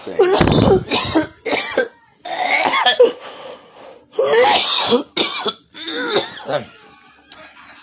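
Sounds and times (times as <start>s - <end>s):
person coughing hard after a heavy hit from a silicone pipe: 0.2s - 3.2s, 4.2s - 6.6s.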